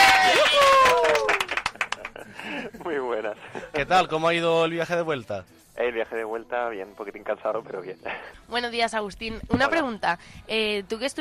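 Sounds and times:
scattered hand claps from a small studio audience: 0.3s - 2.2s
speech: 3.8s - 11.1s.

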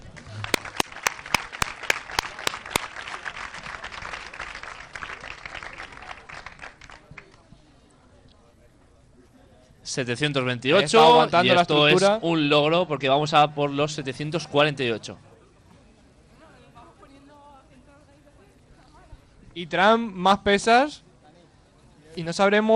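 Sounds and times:
audience applause: 0.4s - 7.0s
speech: 9.9s - 15.2s, 19.6s - 21.1s, 22.2s - 22.7s.

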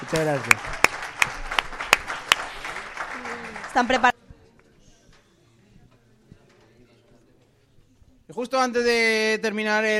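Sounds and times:
speech: 0.0s - 0.8s, 3.8s - 4.1s, 8.3s - 9.9s
crowd applauding: 0.0s - 4.2s.

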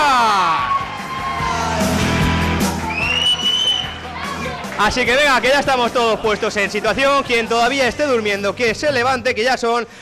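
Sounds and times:
crowd, audience applause and cheering: 0.0s - 7.6s
speech: 4.8s - 10.0s.

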